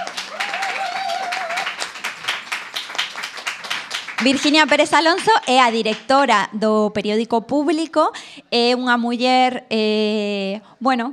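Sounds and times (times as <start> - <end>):
audience applause: 0.0 - 6.0
speech: 4.2 - 11.1.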